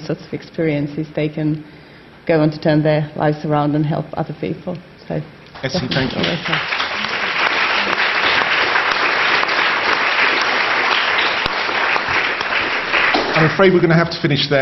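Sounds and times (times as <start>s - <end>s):
speech: 0.1s - 6.8s, 13.4s - 14.6s
audience applause for the panel: 5.6s - 14.0s.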